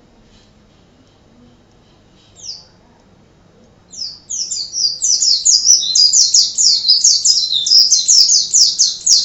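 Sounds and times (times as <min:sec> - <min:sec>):
white-eye song: 0:03.6 - 0:09.2.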